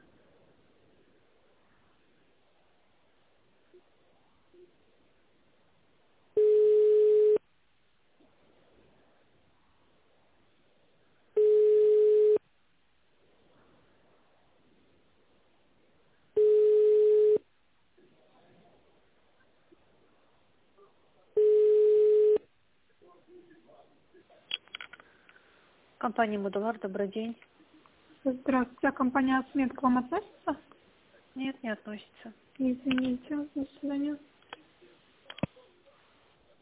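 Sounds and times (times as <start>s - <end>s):
telephone line tone: 6.4s - 7.4s, 11.4s - 12.4s, 16.4s - 17.4s, 21.4s - 22.4s
speech: 26.0s - 27.5s, 28.2s - 30.8s, 31.4s - 34.3s.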